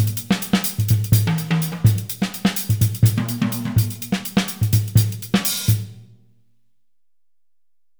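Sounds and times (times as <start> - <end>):
West African highlife rhythms on drumset: 0.0 - 6.0.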